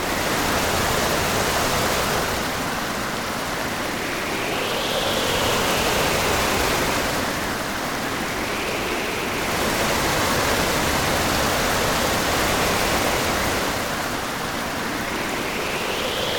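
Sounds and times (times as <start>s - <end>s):
sea storm: 0.0s - 16.3s.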